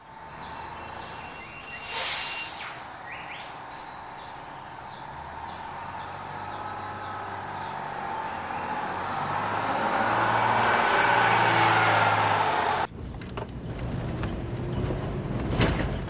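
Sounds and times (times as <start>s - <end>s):
car driving over a potholed road: 3.6s - 16.0s.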